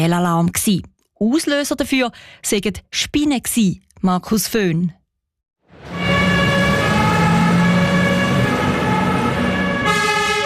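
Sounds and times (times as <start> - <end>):
speech: 0.0 - 5.0
fire engines leaving station with sirens: 5.6 - 10.4.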